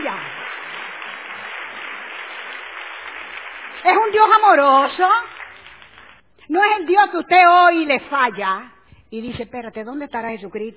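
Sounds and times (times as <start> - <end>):
audience applause: 0.0 - 6.3
speech: 4.1 - 5.4, 6.5 - 10.7.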